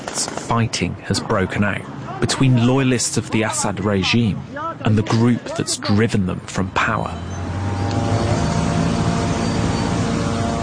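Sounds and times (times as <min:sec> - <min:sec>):
speech: 0:00.2 - 0:07.4
surveillance drones buzzing overhead: 0:06.8 - 0:10.6.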